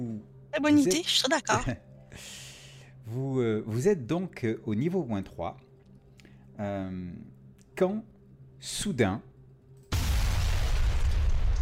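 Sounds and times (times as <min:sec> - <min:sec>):
speech: 0:00.0 - 0:02.4, 0:03.1 - 0:05.7, 0:06.6 - 0:09.3
huge explosion shaking a building: 0:09.9 - 0:11.6.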